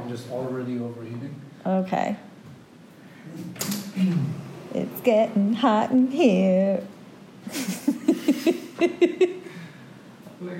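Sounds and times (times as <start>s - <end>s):
speech: 0.1s - 2.3s, 3.3s - 9.4s
door opening: 3.4s - 4.3s.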